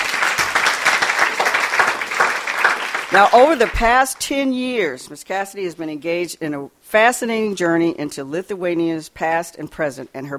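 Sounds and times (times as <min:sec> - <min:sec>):
audience applause: 0:00.0 - 0:03.9
speech: 0:03.1 - 0:10.3.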